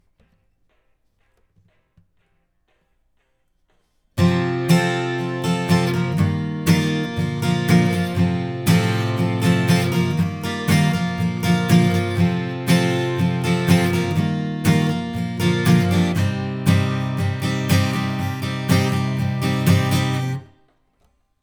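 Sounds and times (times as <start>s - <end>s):
acoustic guitar: 4.2s - 20.7s.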